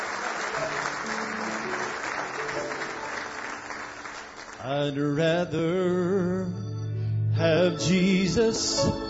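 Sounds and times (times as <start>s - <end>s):
audience hand clapping: 0.0s - 4.7s
speech: 4.7s - 6.6s, 7.4s - 9.0s.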